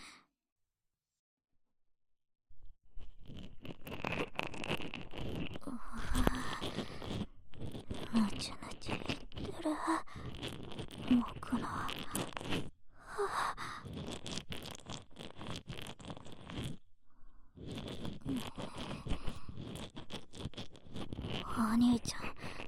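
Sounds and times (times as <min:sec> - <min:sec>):
brushing of the right ear ASMR: 0:03.0 - 0:12.7, 0:13.6 - 0:16.8, 0:17.6 - 0:22.6.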